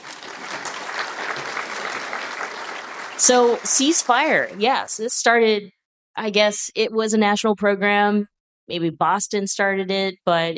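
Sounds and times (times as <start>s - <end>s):
audience applause welcoming panel speakers: 0.0s - 4.6s
speech: 3.2s - 10.5s.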